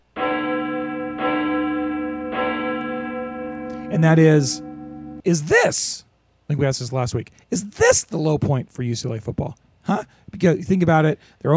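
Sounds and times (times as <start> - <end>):
clock bell striking: 0.2 - 5.2
speech: 3.9 - 11.5.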